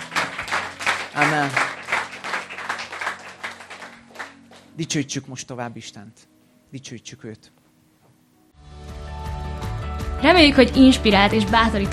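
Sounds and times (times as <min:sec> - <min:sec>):
audience applause: 0:00.0 - 0:04.7
speech: 0:01.2 - 0:01.7, 0:04.8 - 0:07.6, 0:10.2 - 0:11.9.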